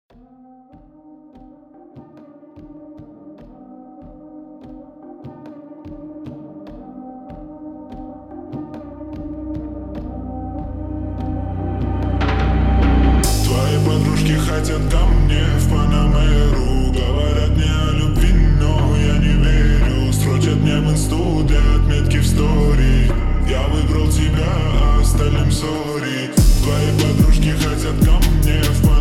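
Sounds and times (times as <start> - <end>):
Brazilian funk music: 8.1 - 25.8, 26.4 - 28.9.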